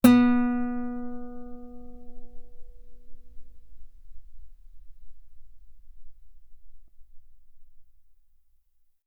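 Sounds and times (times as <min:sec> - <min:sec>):
guitar B3 note on B string played fortissimo: 0:00.0 - 0:05.8.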